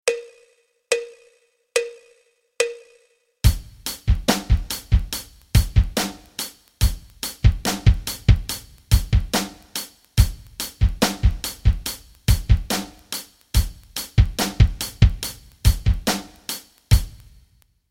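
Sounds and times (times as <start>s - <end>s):
rock rhythms: 3.4s - 17.5s.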